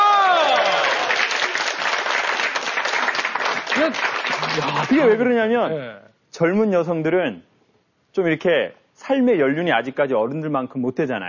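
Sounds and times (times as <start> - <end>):
audience applause: 0.0 - 5.2
speech: 3.9 - 7.5, 8.2 - 11.2.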